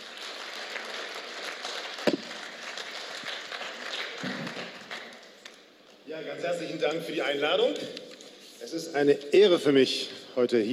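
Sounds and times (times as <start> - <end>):
audience applause welcoming a guest speaker at a congregation gathering: 0.0 - 5.4
speech: 6.2 - 8.0, 8.6 - 10.7.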